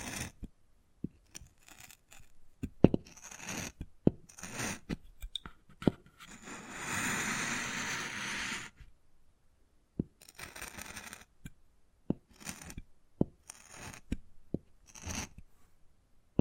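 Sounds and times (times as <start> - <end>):
wood carving scratches and scrapes: 0.0 - 0.5, 1.2 - 8.8, 10.2 - 11.4, 12.3 - 12.8, 13.4 - 14.2, 14.8 - 15.4.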